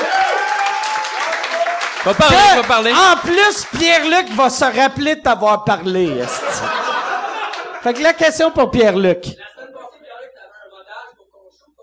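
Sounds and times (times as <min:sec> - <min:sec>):
audience applause: 0:00.0 - 0:04.4, 0:06.9 - 0:08.1
speech: 0:02.0 - 0:06.7, 0:07.8 - 0:09.5
laughter: 0:06.0 - 0:10.2.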